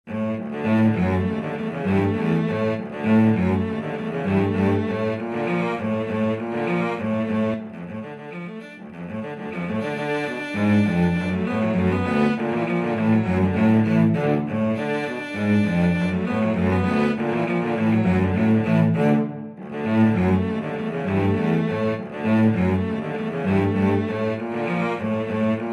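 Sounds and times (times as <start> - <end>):
cello duet: 0.1 - 25.7.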